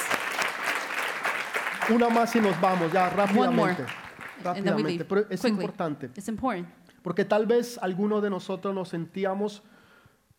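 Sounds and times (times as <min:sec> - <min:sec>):
audience applause: 0:00.0 - 0:04.8
speech: 0:01.9 - 0:09.7.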